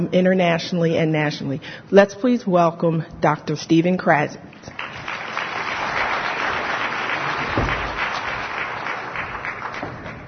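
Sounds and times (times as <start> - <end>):
speech: 0.0 - 5.0
audience applause: 4.7 - 10.2.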